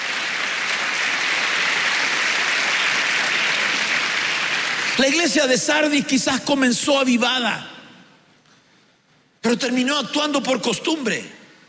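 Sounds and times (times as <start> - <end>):
audience clapping hands: 0.0 - 5.4
speech: 5.0 - 7.8, 9.5 - 11.4.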